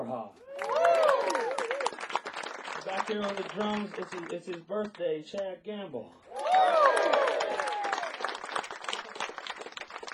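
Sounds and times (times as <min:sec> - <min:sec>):
speech: 0:00.0 - 0:00.5, 0:02.8 - 0:06.8
audience clapping: 0:00.5 - 0:05.5, 0:06.3 - 0:10.1.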